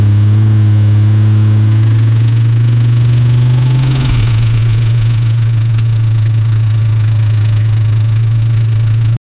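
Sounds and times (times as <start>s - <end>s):
motorsport inline 4 engine: 0.0s - 9.2s.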